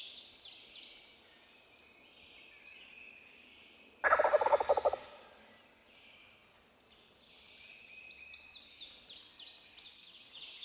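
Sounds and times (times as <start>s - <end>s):
wild turkey gobble: 4.1s - 5.3s.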